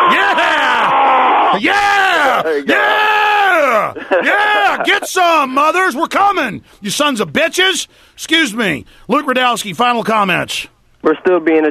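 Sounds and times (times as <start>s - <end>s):
laughter: 0.0s - 1.7s, 3.5s - 6.1s
shouted war growls: 0.0s - 4.9s
speech: 1.6s - 11.6s.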